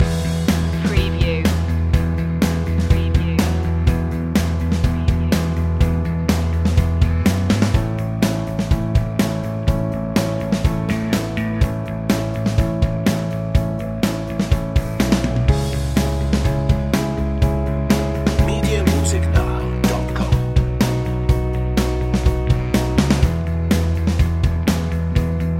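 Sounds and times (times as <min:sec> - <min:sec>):
underscore music loop: 0:00.0 - 0:25.4.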